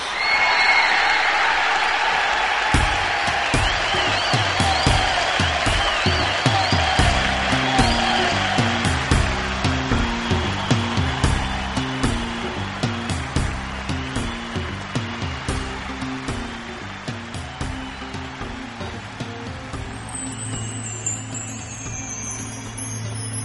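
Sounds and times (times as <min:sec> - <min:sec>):
large concert audience clapping and cheering: 0:00.0 - 0:23.4
loose drum hits: 0:02.6 - 0:20.1.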